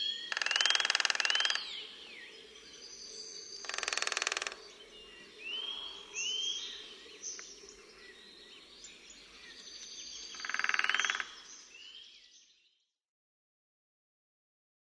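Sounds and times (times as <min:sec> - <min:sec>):
lesser spotted woodpecker: 0:00.0 - 0:01.8, 0:03.5 - 0:04.8, 0:09.6 - 0:11.7.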